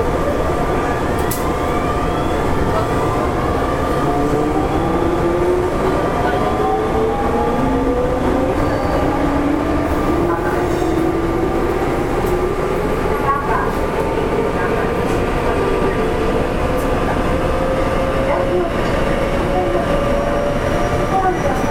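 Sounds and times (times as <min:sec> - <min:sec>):
Kintetsu 7000 series train running: 0:00.0 - 0:21.7.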